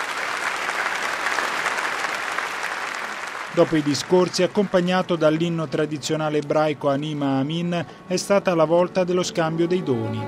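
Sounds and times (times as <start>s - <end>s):
prolonged applause from a large crowd: 0.0s - 6.0s
speech: 3.6s - 10.2s.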